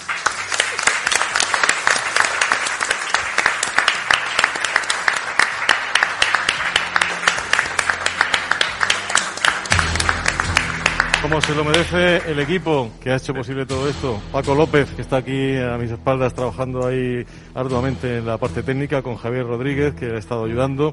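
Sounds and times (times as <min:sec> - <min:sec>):
audience applause: 0:00.0 - 0:12.7
speech: 0:11.3 - 0:20.9.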